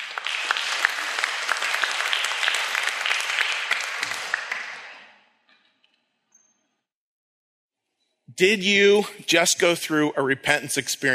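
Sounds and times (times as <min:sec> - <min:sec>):
audience applause: 0:00.0 - 0:05.1
speech: 0:08.4 - 0:11.1.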